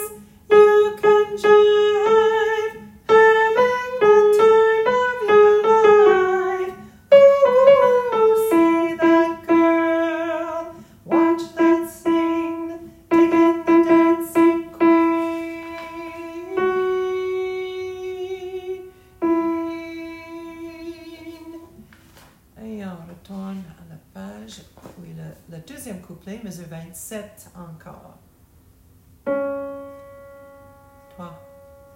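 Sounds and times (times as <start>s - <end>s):
altos singing: 0.0s - 21.8s.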